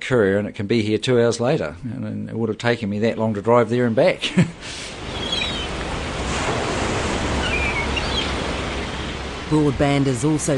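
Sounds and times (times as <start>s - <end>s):
speech: 0.1s - 5.0s, 9.5s - 10.5s
thunder of the surf on New Brighton Beach near Christchurch: 4.5s - 10.5s.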